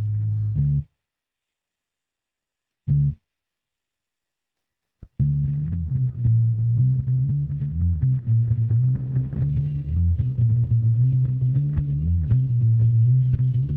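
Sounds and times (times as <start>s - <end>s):
bass: 0.0s - 1.0s, 2.8s - 3.3s, 5.0s - 13.7s.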